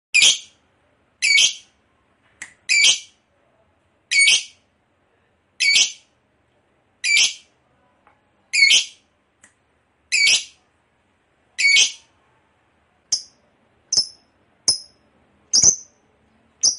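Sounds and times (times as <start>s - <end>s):
lovebird chirps and long harsh chatter: 0.2s - 0.5s, 1.2s - 1.7s, 2.7s - 3.2s, 4.1s - 4.6s, 5.6s - 6.1s, 7.0s - 7.5s, 8.5s - 9.0s, 10.1s - 10.6s, 11.6s - 12.1s, 13.1s - 14.9s, 15.5s - 15.9s.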